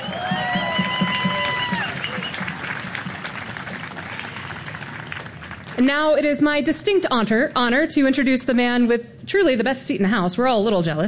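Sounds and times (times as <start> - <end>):
audience applause: 0.0 - 5.8
speech: 5.8 - 11.0.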